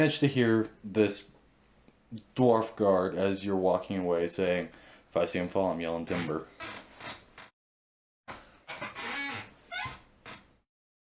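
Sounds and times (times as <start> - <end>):
speech: 0.0 - 1.3, 2.1 - 6.8
squeaky chair: 6.1 - 7.5, 8.6 - 10.6.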